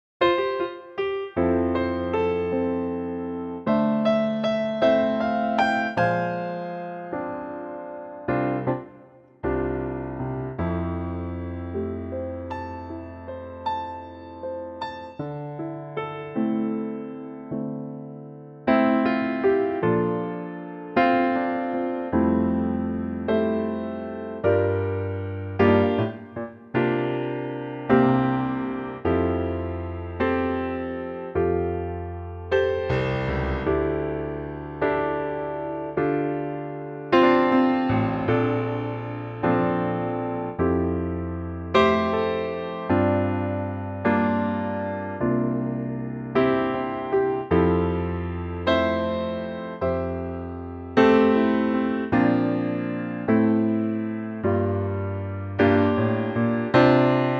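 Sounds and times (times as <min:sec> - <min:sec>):
piano note F: 0:00.2 - 0:57.3.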